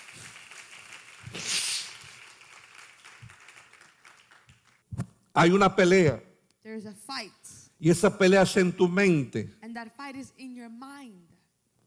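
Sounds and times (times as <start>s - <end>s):
audience applause: 0.0s - 4.8s
speech: 5.4s - 11.3s.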